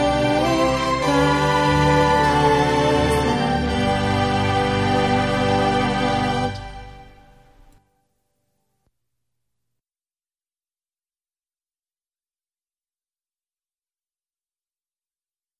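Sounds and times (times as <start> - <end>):
alto voice singing a Christmas hymn: 0.0 - 7.4.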